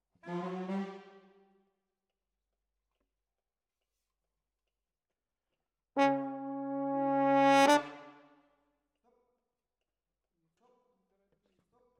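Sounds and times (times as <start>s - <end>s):
horns: 6.0s - 8.2s.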